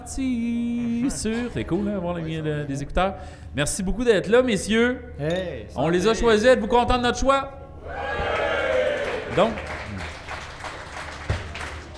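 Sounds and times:
speech: 0.1s - 8.2s, 9.3s - 9.7s
audience applause: 8.4s - 11.9s.

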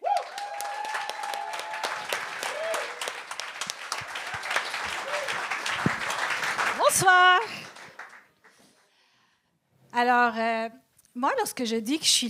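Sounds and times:
cheers and whoops: 0.0s - 3.3s, 4.2s - 5.6s
audience applause: 0.0s - 8.6s
speech: 10.0s - 12.2s.

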